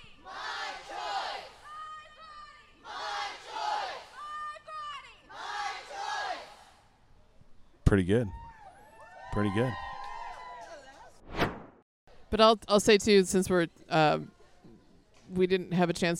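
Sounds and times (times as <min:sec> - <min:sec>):
rally crowd chanting: 0:00.0 - 0:01.8, 0:02.5 - 0:04.3, 0:05.2 - 0:06.9
speech: 0:07.9 - 0:08.4, 0:09.3 - 0:09.8, 0:12.3 - 0:14.4, 0:15.3 - 0:16.1.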